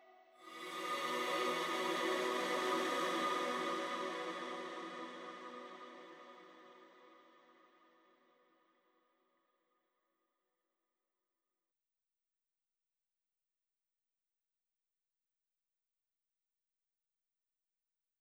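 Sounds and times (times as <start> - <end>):
synth pads: 0.0 - 7.4.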